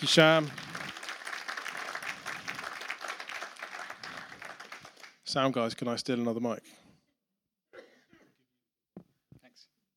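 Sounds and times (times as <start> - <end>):
speech: 0.0 - 0.7, 5.3 - 6.8
audience at a birthday celebration clapping to welcome a speaker: 0.0 - 5.6.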